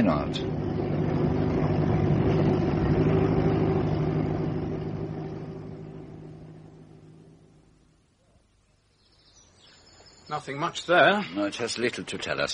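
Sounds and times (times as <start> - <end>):
speech: 0.0 - 0.6, 10.3 - 12.5
car driving and parking: 0.0 - 8.0.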